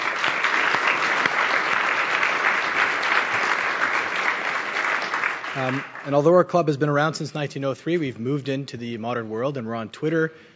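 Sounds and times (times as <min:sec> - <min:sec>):
audience applause: 0:00.0 - 0:06.3
speech: 0:05.6 - 0:10.5.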